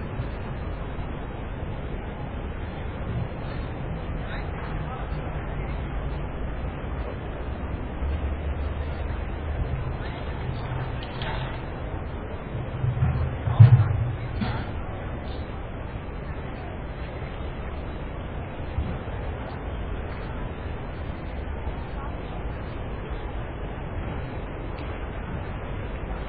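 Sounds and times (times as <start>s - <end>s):
park ambience in Munich: 0.0s - 26.2s.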